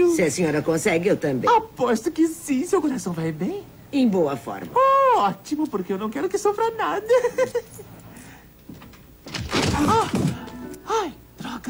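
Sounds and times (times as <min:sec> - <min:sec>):
speech: 0:00.1 - 0:08.0, 0:09.8 - 0:11.6
sticking door being forced open: 0:08.7 - 0:10.5.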